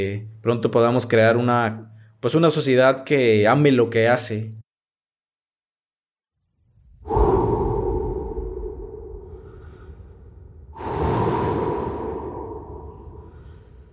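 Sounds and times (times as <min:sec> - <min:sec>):
speech: 0:00.0 - 0:04.6
deep breathing: 0:06.8 - 0:13.9.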